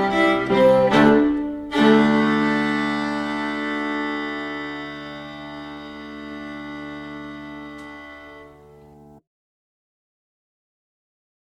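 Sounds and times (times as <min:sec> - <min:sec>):
slow fiddle tune: 0:00.0 - 0:09.2.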